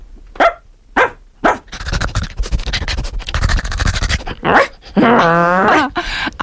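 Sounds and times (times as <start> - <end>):
person imitating a barking dog: 1.5 - 6.0.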